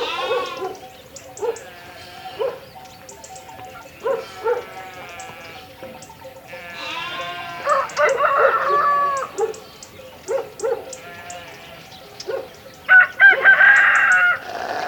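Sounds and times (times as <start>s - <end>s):
sheep bleating: 0.0s - 0.8s, 1.6s - 2.7s, 3.5s - 10.0s, 10.9s - 11.9s, 14.0s - 14.8s
farmyard sounds: 0.0s - 14.8s.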